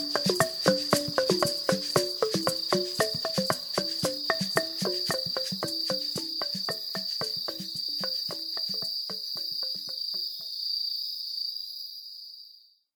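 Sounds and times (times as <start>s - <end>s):
balafon playing: 0.0s - 10.1s.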